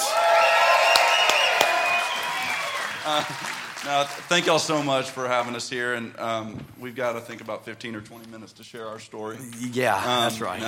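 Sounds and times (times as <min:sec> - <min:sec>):
stage audience whooping and hollering: 0:00.0 - 0:03.9
stage audience clapping: 0:00.0 - 0:05.9
speech: 0:03.1 - 0:10.6.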